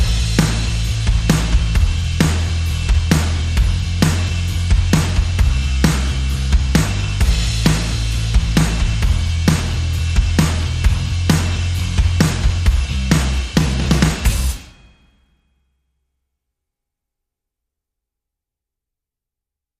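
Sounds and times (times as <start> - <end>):
bass: 0.0 - 15.2
drums: 0.0 - 15.3.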